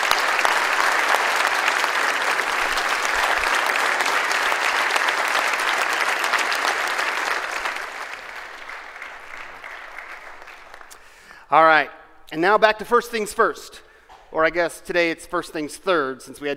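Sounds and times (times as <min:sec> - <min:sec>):
audience applause: 0:00.0 - 0:11.2
speech: 0:11.5 - 0:16.5.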